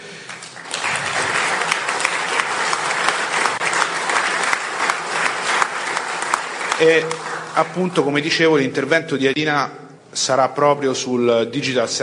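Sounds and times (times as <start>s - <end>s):
audience applause: 0.0s - 8.1s
speech: 6.8s - 12.0s.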